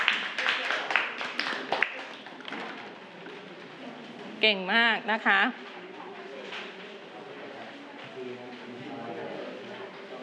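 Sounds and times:
classroom applause: 0.0s - 2.8s
speech: 4.4s - 5.7s.

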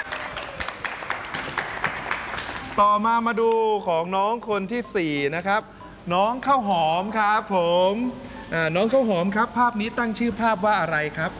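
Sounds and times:
small group clapping for a kindergarten child: 0.0s - 2.8s
speech: 2.8s - 11.3s.

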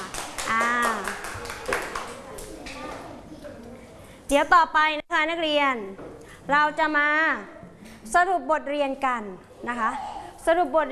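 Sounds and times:
students clapping hands: 0.0s - 2.8s
speech: 4.3s - 10.9s.

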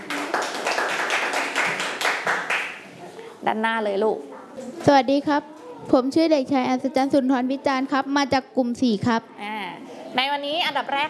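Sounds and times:
students clapping for a classmate: 0.0s - 2.8s
speech: 3.4s - 9.5s, 10.1s - 11.0s.

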